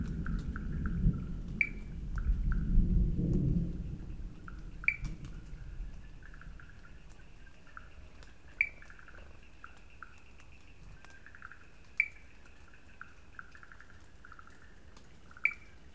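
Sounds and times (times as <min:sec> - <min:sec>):
thunder in Sri Lanka: 0:00.0 - 0:07.1
Wood Frogs in Sri Lanka: 0:00.0 - 0:15.9.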